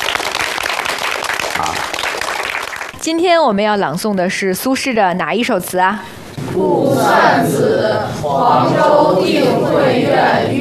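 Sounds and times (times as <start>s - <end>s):
audience applause: 0.0s - 3.0s
speech: 3.0s - 10.5s.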